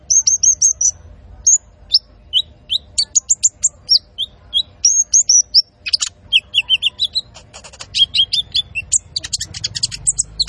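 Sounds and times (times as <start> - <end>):
Van Hasselt's sunbird singing vigorously: 0.0 - 10.4.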